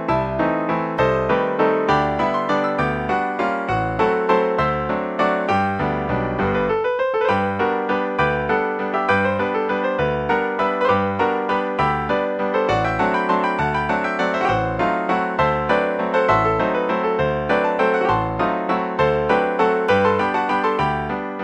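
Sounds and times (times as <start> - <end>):
piano played by six hands: 0.0 - 21.4.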